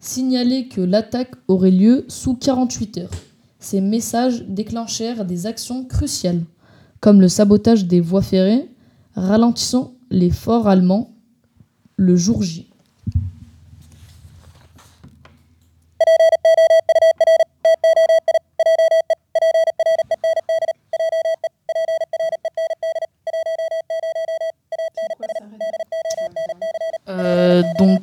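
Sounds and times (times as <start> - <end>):
speech: 0.0 - 11.1, 12.0 - 13.3, 16.1 - 20.0, 27.5 - 28.0
Morse code message beeps: 16.0 - 28.0.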